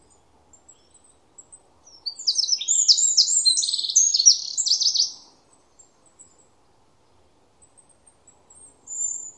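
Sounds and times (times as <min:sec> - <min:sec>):
bird high thin chirps: 0:02.1 - 0:05.2.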